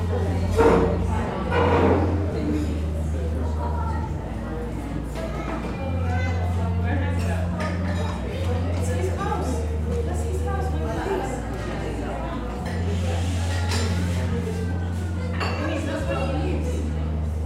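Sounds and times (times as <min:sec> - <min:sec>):
chatter in an English seaside town coffee shop: 0:00.0 - 0:17.4.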